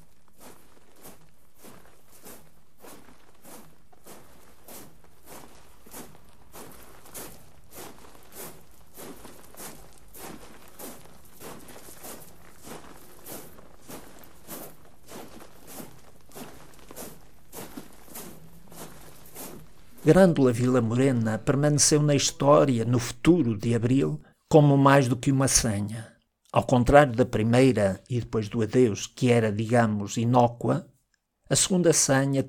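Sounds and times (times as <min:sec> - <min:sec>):
feet shuffling on gravel: 0:00.0 - 0:22.8
speech: 0:20.1 - 0:30.9, 0:31.5 - 0:32.4.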